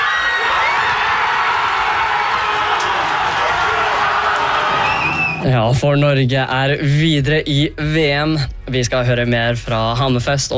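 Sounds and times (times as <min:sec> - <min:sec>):
crowd in Hammerfest cheering as Norway advances at the World Championship: 0:00.0 - 0:05.5
speech: 0:05.4 - 0:10.5.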